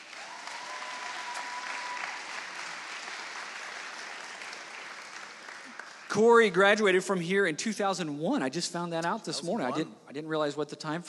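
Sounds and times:
audience applauding to welcome a guest speaker: 0.0 - 6.8
speech: 6.1 - 11.0.

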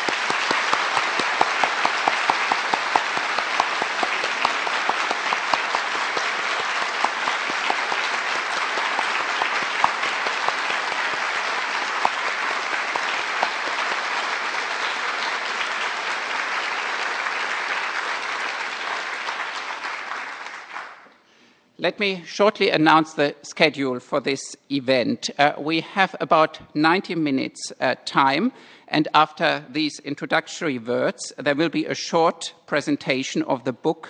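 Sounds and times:
audience applause: 0.0 - 21.0
speech: 21.8 - 34.0.

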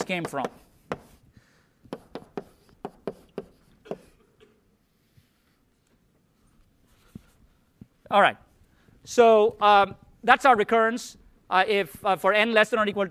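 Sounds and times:
writing out equations by hand during a lecture: 0.0 - 1.2, 1.8 - 4.2
speech: 0.1 - 0.7, 8.1 - 8.4, 9.1 - 13.0.

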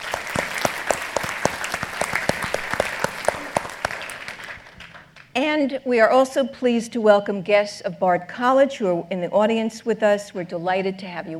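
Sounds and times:
audience at an evening program clapping for council members and trustees: 0.0 - 5.3
speech: 5.4 - 11.3.

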